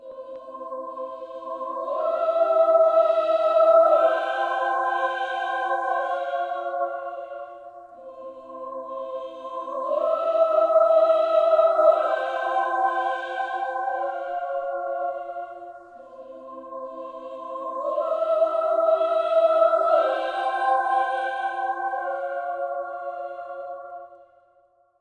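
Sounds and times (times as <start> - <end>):
choir singing: 0.0 - 24.9.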